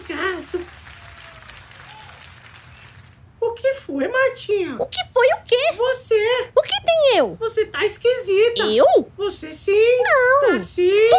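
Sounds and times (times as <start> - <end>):
applause: 0.0 - 3.3
speech: 3.9 - 11.1.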